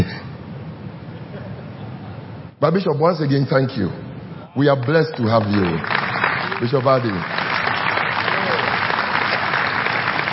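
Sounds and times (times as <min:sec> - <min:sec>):
speech: 0:02.6 - 0:06.0, 0:06.6 - 0:07.4
audience clapping: 0:04.6 - 0:10.3.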